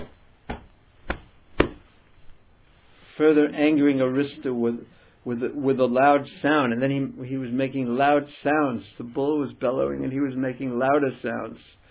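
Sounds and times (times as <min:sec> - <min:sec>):
palms slapping arms: 0:00.0 - 0:01.9
faint hiss: 0:00.0 - 0:11.8
speech: 0:03.2 - 0:11.8.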